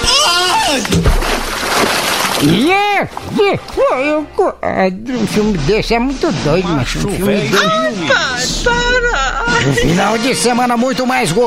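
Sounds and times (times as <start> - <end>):
person jumping into a reservoir of icy water: 0.7 - 3.4
speech: 2.4 - 8.9, 9.6 - 11.4.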